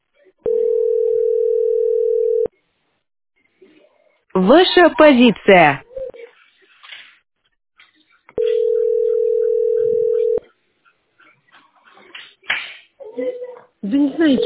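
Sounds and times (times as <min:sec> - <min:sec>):
telephone dial tone beeps: 0:00.5 - 0:02.5, 0:08.4 - 0:10.4
speech: 0:04.4 - 0:05.8, 0:14.3 - 0:14.4.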